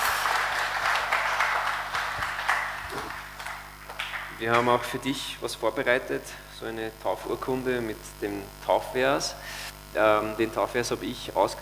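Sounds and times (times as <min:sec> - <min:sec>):
audience applause: 0:00.0 - 0:04.8
speech: 0:04.4 - 0:11.6.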